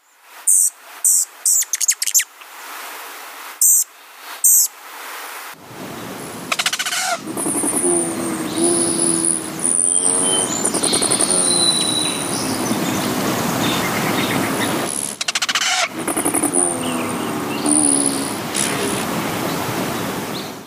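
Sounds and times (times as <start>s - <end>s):
bird calling: 6.4s - 20.6s.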